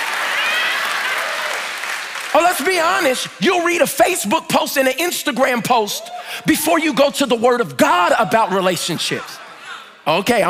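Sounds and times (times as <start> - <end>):
audience clapping: 0.0 - 3.4
speech: 2.6 - 9.4, 10.1 - 10.4
laughter: 7.9 - 10.4.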